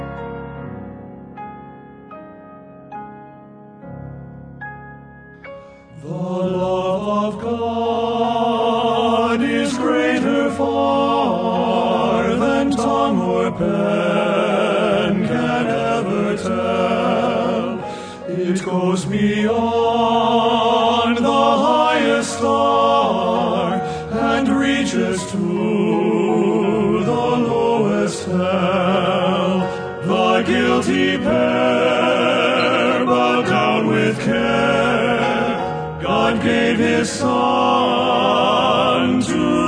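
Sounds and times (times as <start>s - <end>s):
male vocal quartet: 5.8s - 39.6s.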